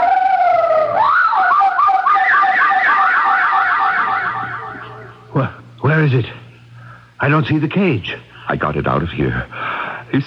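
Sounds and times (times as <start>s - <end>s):
parrot mimicking a siren: 0.0s - 5.3s
speech: 7.2s - 10.2s.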